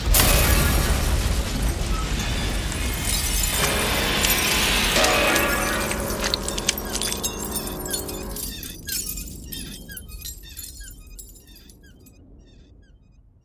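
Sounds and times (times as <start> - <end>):
stone sarcophagus bursting open and shattering: 0.1 - 11.8
breaking debris clinking: 0.1 - 12.2
ringing musical notes: 3.6 - 12.2.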